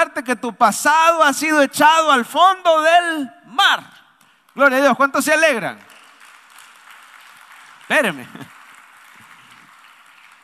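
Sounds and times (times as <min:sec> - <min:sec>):
speech: 0:00.2 - 0:04.0, 0:04.6 - 0:05.9, 0:07.9 - 0:08.5
audience applause: 0:05.9 - 0:10.4.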